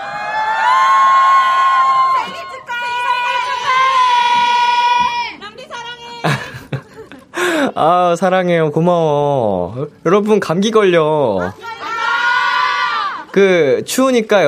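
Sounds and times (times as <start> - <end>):
studio crowd cheering and shrieking: 0.0 - 5.4, 11.6 - 13.4
laughter: 6.2 - 7.7
speech: 7.8 - 11.7, 13.4 - 14.4.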